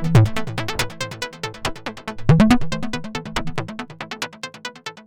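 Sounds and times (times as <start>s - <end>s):
Roland Juno-106 synthesizer arpeggio beat with external effects: 0.0s - 4.4s.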